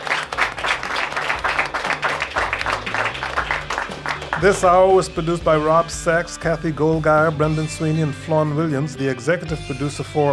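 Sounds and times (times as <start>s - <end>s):
audience applause: 0.0s - 4.8s
speech: 4.4s - 10.3s.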